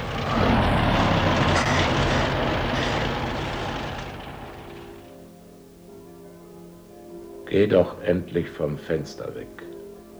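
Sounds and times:
bus driving away: 0.0 - 5.1
speech: 7.5 - 9.8.

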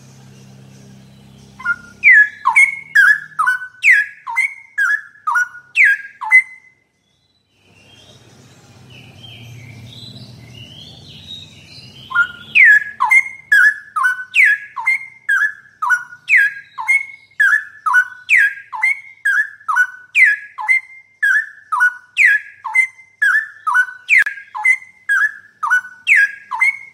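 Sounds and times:
straw-headed bulbul song: 0.0 - 26.9.

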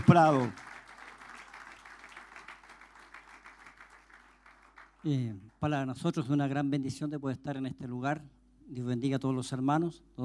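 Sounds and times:
audience applause: 0.0 - 5.0
speech: 0.1 - 0.7, 5.0 - 10.2.

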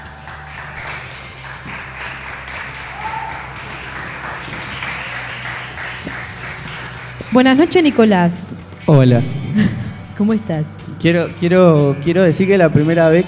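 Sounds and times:
audience applause: 0.0 - 7.3
speech: 7.3 - 13.2.

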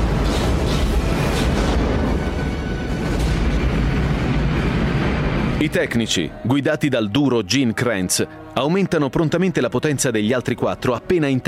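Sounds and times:
Saturn V rocket launch roar: 0.0 - 6.3
speech: 5.6 - 11.4.

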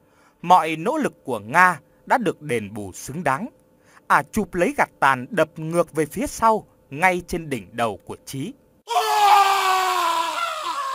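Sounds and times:
speech: 0.4 - 8.6
man screaming in pain: 8.9 - 10.9.

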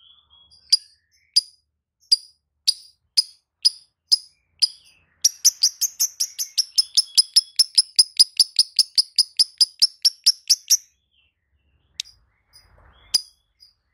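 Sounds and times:
lovebird song with buzzy chattering trill: 2.1 - 10.9.

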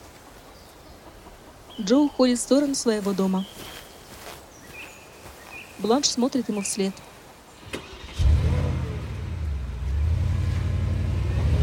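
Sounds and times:
speech: 1.8 - 3.8, 5.8 - 7.1
black Porsche car driving away: 7.6 - 11.6.

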